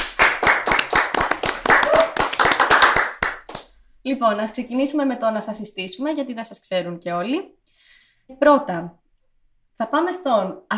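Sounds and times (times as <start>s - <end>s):
clapping: 0.0s - 3.7s
speech: 4.1s - 7.6s, 8.3s - 9.0s, 9.8s - 10.7s.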